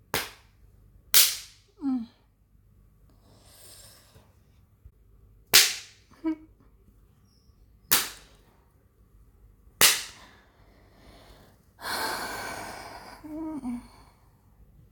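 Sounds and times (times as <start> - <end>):
spanking slaps on bare skin: 0.1 - 0.5, 1.2 - 1.6, 5.5 - 6.1, 7.9 - 8.4, 9.8 - 10.3
breathy exhale: 10.2 - 14.2
short vocal gasps and sighs: 10.2 - 14.3.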